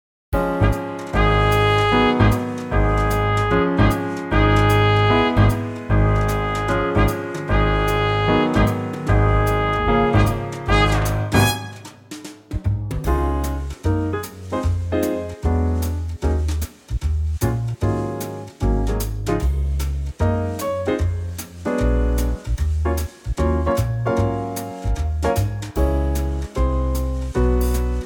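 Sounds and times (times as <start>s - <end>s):
quartet playing swing in D flat: 0.4s - 28.0s.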